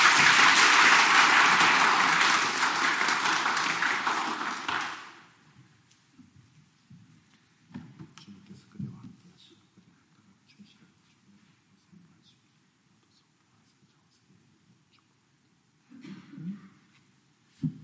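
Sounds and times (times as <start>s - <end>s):
welcoming applause: 0.0s - 5.3s.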